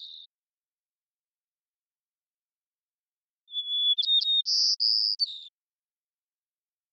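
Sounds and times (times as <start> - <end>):
white-crowned sparrow song: 0.0 - 0.4, 3.0 - 5.8.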